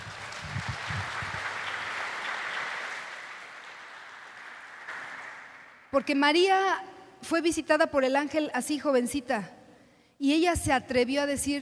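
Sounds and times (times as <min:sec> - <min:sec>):
applause: 0:00.0 - 0:06.0
speech: 0:05.9 - 0:09.6, 0:10.2 - 0:11.6.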